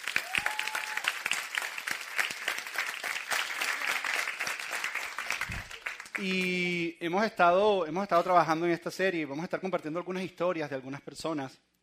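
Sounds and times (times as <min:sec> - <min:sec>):
audience applause: 0:00.0 - 0:06.6
speech: 0:06.2 - 0:11.7.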